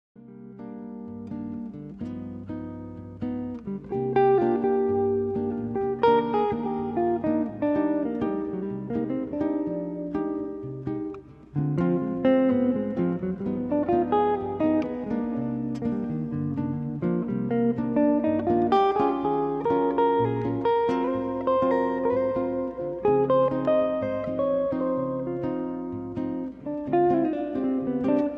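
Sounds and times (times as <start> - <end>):
hi-fi bossa nova music: 0.6 - 28.3.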